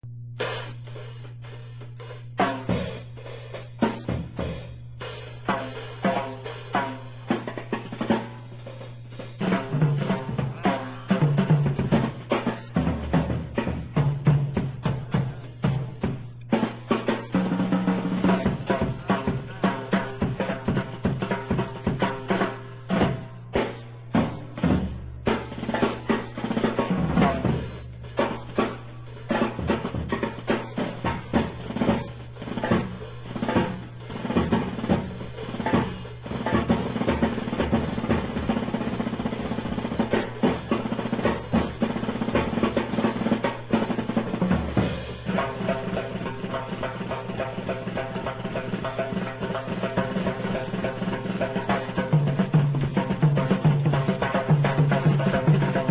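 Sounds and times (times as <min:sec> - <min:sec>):
duet: 0:00.4 - 0:55.8.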